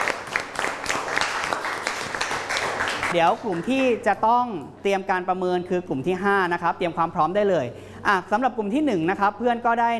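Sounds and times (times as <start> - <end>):
group of people applauding: 0.0 - 4.0
speech: 3.1 - 9.9.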